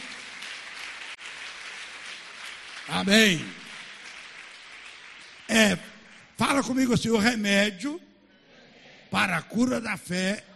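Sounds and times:
audience applause: 0.0s - 6.3s
speech: 2.9s - 3.6s, 5.5s - 8.1s, 9.1s - 10.5s.

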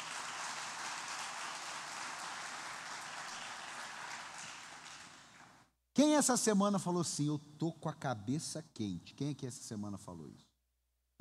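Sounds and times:
audience applause: 0.0s - 5.6s
speech: 6.0s - 10.5s.

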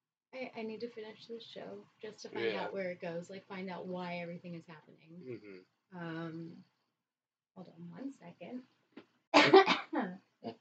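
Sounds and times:
speech: 0.4s - 6.7s, 7.6s - 8.8s
person sneezing: 9.4s - 9.9s.

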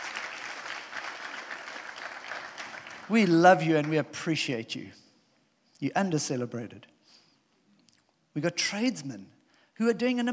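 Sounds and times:
audience applause: 0.0s - 4.0s
speech: 3.1s - 5.0s, 5.8s - 6.9s, 8.4s - 10.3s.

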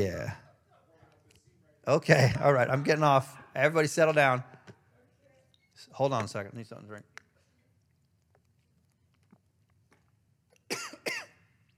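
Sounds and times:
speech: 0.0s - 0.4s, 1.8s - 4.6s, 5.8s - 7.2s
person coughing after a drink went down the wrong way: 10.7s - 11.5s.

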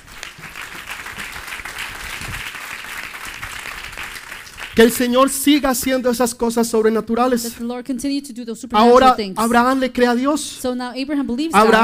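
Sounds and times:
loud sustained applause from a crowd: 0.0s - 5.1s
speech: 4.8s - 11.8s.

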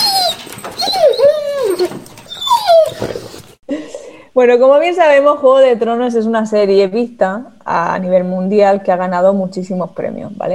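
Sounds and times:
poodle puppy yelping and whining: 0.0s - 3.6s
speech: 4.4s - 10.5s.

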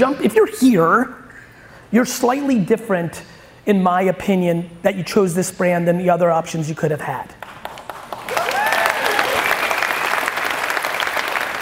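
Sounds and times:
speech: 0.0s - 1.2s, 1.9s - 7.4s
audience applause: 7.6s - 11.6s
cheering voices: 8.3s - 10.3s.

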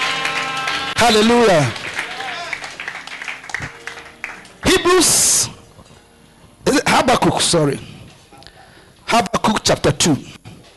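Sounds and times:
people clapping hands: 0.0s - 4.9s
speech: 1.0s - 1.8s, 4.9s - 5.6s, 6.6s - 7.9s, 9.1s - 10.4s.

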